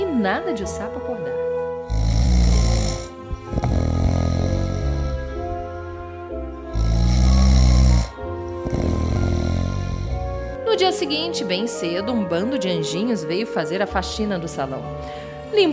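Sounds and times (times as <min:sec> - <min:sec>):
speech: 0:00.2 - 0:01.3, 0:10.7 - 0:15.7
snoring: 0:01.8 - 0:06.1, 0:06.7 - 0:10.6.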